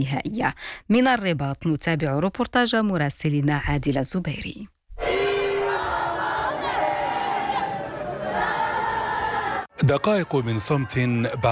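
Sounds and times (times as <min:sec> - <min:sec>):
speech: 0:00.0 - 0:05.2, 0:09.8 - 0:11.4
football fans chanting in unison: 0:05.0 - 0:11.4.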